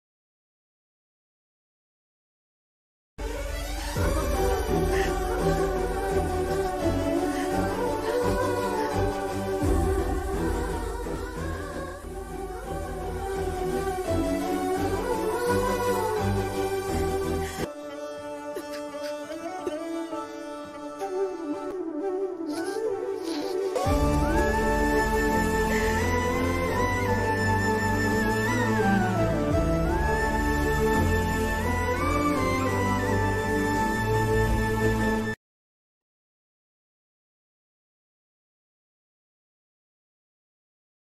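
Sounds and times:
happy background music: 3.2s - 35.4s.

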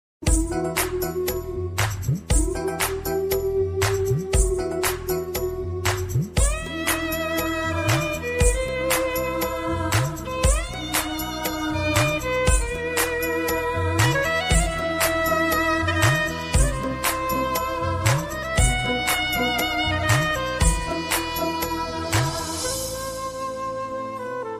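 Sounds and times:
Kannada background music ringtone: 0.2s - 23.6s.

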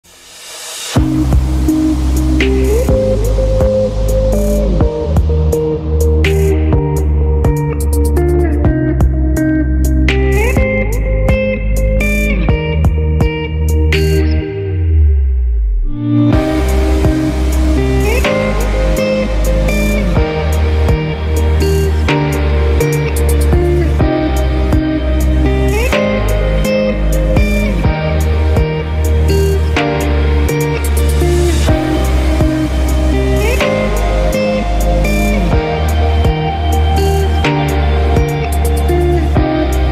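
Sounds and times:
instrumental music: 0.0s - 39.8s.

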